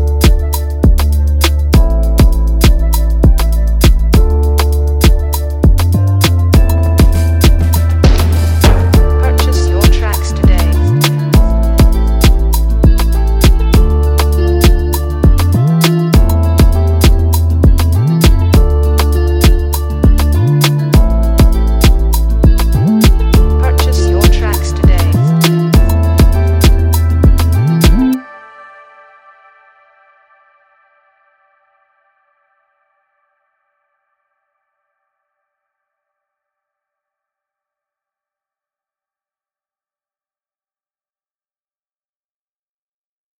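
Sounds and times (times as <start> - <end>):
beat: 0.0 - 28.2.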